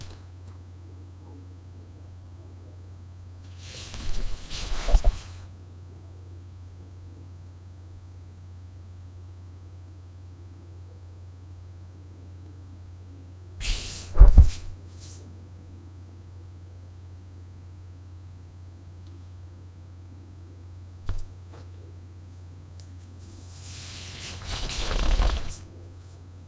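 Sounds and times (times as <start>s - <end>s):
clothing rustling: 0.0s - 0.2s, 3.6s - 5.5s, 13.6s - 14.9s, 21.0s - 21.5s, 23.5s - 25.8s.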